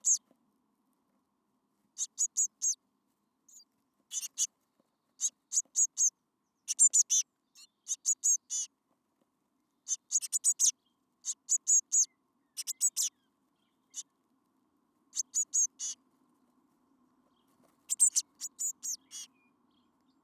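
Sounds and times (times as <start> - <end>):
Eurasian blue tit calling: 0.0 - 0.2, 2.0 - 2.8, 3.5 - 4.5, 5.2 - 6.1, 6.7 - 8.7, 9.9 - 13.2, 15.2 - 16.0, 17.9 - 19.3.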